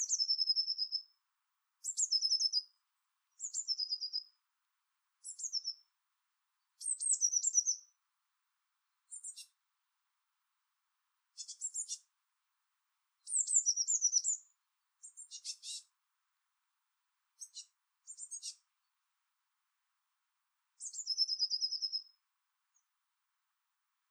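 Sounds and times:
Eurasian blue tit singing high trilled phrases: 0.0 - 1.1, 1.8 - 2.7, 3.3 - 4.3, 5.2 - 5.9, 6.8 - 7.9, 9.1 - 9.6, 11.4 - 12.1, 13.2 - 15.9, 17.4 - 18.6, 20.8 - 22.1.

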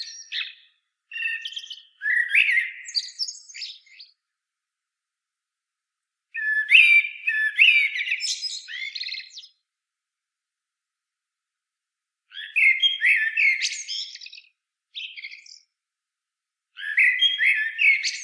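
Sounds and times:
common blackbird song: 0.0 - 4.3, 6.3 - 9.7, 12.3 - 15.8, 16.8 - 18.2.

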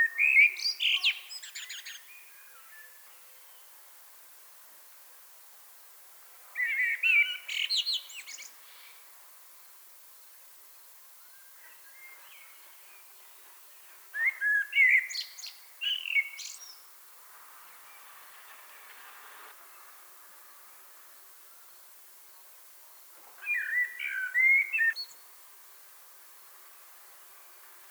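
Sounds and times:
common blackbird song: 0.0 - 3.8, 6.5 - 9.1, 10.8 - 17.0, 21.5 - 25.4.

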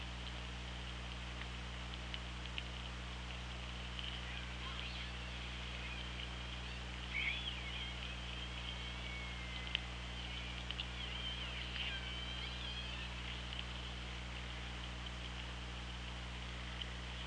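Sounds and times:
low electrical hum and hiss: 0.0 - 17.2
orca calls: 4.2 - 13.5.

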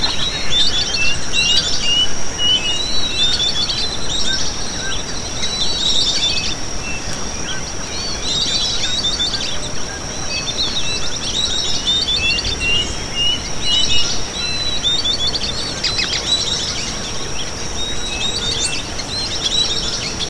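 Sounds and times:
low rumbling noise: 0.0 - 5.7, 9.5 - 19.4
birds chirping and whistling: 0.0 - 20.2.

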